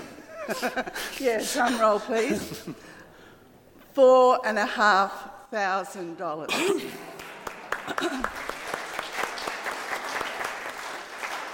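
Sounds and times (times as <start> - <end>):
speech: 0.5 - 3.0, 4.0 - 7.1, 7.9 - 8.4
crowd applause: 7.1 - 11.5.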